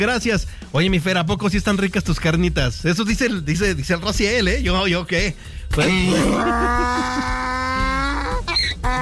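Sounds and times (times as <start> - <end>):
speech: 0.0 - 7.4
person imitating a donkey bray: 5.8 - 9.0.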